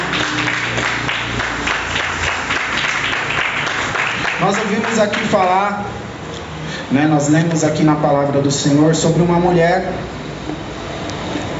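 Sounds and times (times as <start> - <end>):
audience applauding: 0.0 - 5.6
speech: 4.4 - 6.0, 6.9 - 10.2.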